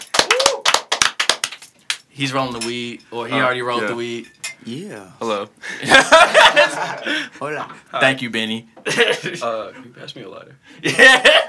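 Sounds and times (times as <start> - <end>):
clapping: 0.0 - 2.1
speech: 2.2 - 11.4
laughter: 5.6 - 7.8, 8.9 - 9.5, 10.8 - 11.4.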